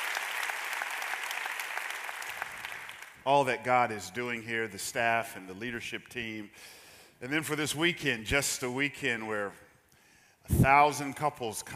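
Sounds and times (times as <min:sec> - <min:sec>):
audience clapping: 0:00.0 - 0:03.3
speech: 0:03.2 - 0:09.6, 0:10.5 - 0:11.7.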